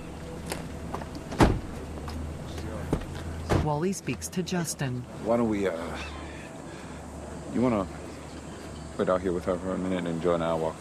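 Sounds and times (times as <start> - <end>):
vehicle engine idling: 0.0 - 10.7
car door thump: 1.3 - 1.7, 2.9 - 3.7
speech: 3.6 - 6.2, 7.6 - 8.0, 9.0 - 10.7.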